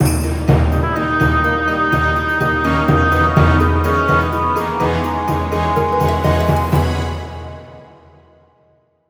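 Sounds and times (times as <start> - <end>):
dungeon entry music: 0.0 - 8.4.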